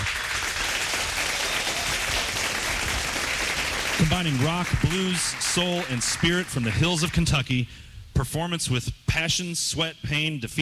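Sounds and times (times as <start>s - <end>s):
audience applause welcoming a performer onto a live-music stage at Tipsy Cow Bar: 0.0s - 7.3s
speech: 4.0s - 10.6s.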